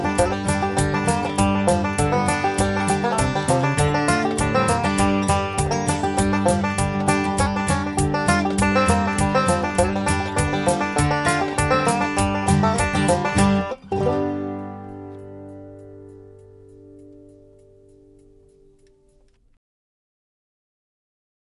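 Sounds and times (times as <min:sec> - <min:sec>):
lonesome banjo: 0:00.0 - 0:15.7.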